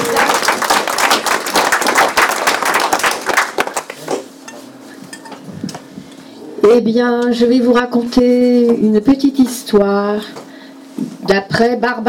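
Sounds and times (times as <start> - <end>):
audience applause: 0.0 - 4.2
speech: 6.7 - 10.4, 11.3 - 12.0.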